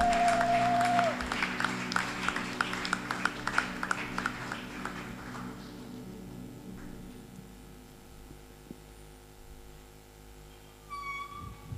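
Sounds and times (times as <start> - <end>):
congregation rhythmic hand clapping at a church worship gathering: 0.0 - 6.2
sustained low hum: 0.0 - 11.7.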